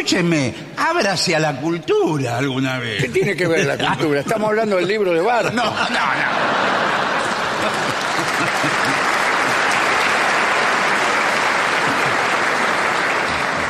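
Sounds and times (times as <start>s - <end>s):
speech: 0.0s - 6.9s, 7.6s - 9.0s
laughter: 2.9s - 13.6s
crowd applause: 5.9s - 13.6s.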